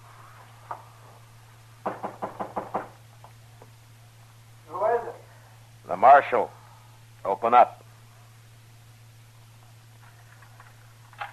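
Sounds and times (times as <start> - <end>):
low steady hum: 0.0 - 11.3
knuckles knocking on a door: 1.8 - 3.0
speech: 6.0 - 6.6, 7.2 - 7.8.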